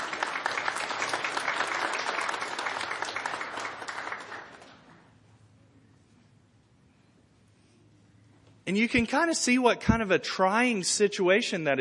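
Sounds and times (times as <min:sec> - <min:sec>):
audience applause: 0:00.0 - 0:05.0
speech: 0:08.7 - 0:11.7.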